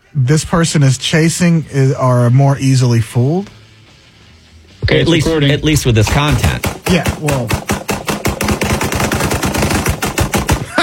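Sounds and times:
speech: 0.2 - 3.6, 4.9 - 7.6
rapid gunfire from a firearm in a played video: 5.8 - 10.8.

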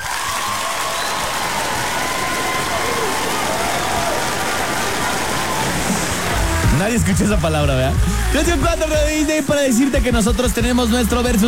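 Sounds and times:
applause sound effect: 0.0 - 7.9
speech: 6.8 - 11.4.

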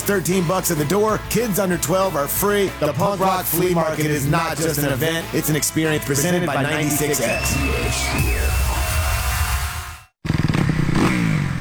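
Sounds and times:
speech: 0.1 - 8.6
loud motorcycle engine revving: 8.2 - 11.5.

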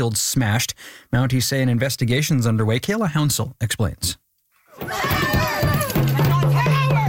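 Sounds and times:
speech: 0.0 - 4.2
angry protesters shouting: 4.8 - 7.0
person yelling: 4.8 - 7.0.

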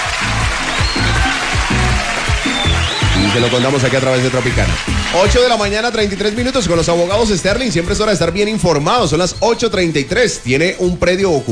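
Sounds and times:
loud applause: 0.0 - 8.6
speech: 3.4 - 11.5.

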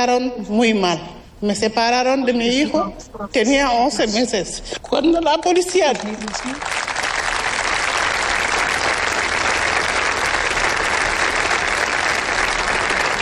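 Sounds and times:
speech: 0.0 - 6.8
large audience applauding: 5.7 - 13.2.

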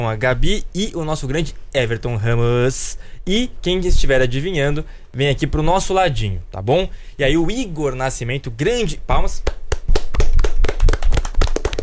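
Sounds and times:
speech: 0.0 - 9.6
hand clapping at a live guessing game: 9.1 - 11.8.

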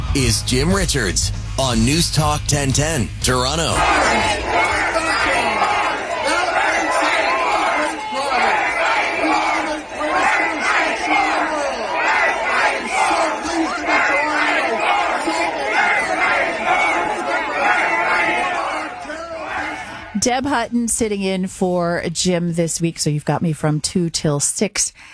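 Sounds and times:
speech: 0.1 - 4.5, 20.3 - 25.1
crowd roaring and shouting at Ford Fest, Doug Ford's political gathering: 3.3 - 20.2.

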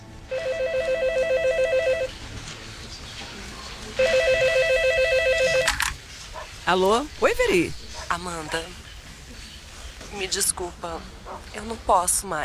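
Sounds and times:
telephone ringing: 0.2 - 2.2, 4.0 - 6.0
speech: 6.7 - 8.8, 10.2 - 12.4.

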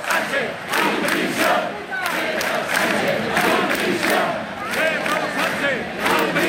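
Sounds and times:
protest crowd chanting slogans: 0.0 - 6.4.

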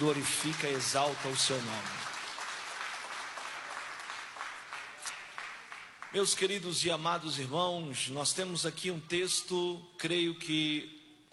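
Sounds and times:
speech: 0.0 - 2.1, 6.1 - 11.3
audience clapping hands: 0.0 - 6.7.

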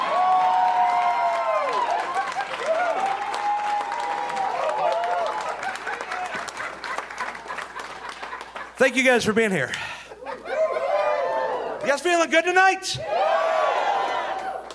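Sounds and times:
crowd clapping: 0.0 - 9.7, 13.7 - 14.7
laughter: 1.9 - 2.8, 5.3 - 9.2, 9.9 - 11.5
speech: 8.8 - 9.9, 11.9 - 13.3.

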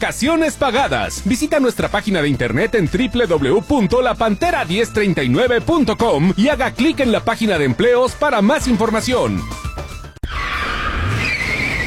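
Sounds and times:
speech: 0.0 - 9.6
car tires squealing in a skid: 10.2 - 11.8.

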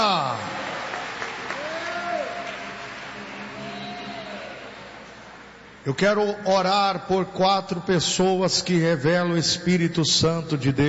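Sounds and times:
audience applauding: 0.0 - 5.5
speech: 5.8 - 10.8.

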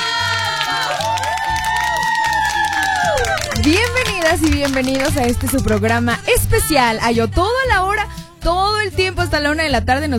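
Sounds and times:
warm applause and cheering: 0.0 - 6.9
speech: 3.6 - 10.1.

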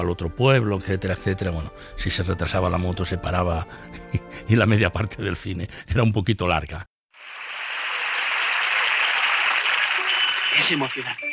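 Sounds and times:
speech: 0.0 - 6.9, 10.6 - 11.3
audience applause: 7.2 - 11.2.

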